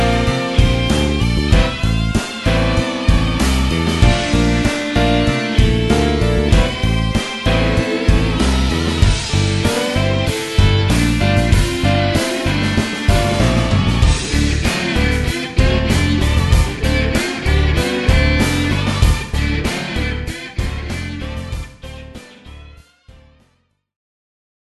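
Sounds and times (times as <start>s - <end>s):
erhu rock music: 0.0s - 23.3s.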